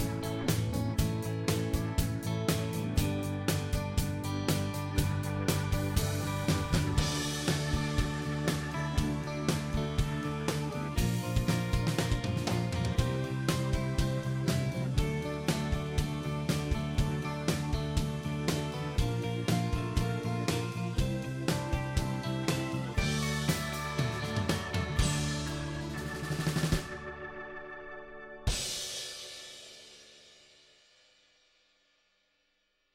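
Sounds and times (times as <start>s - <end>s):
band playing: 0.0s - 27.5s.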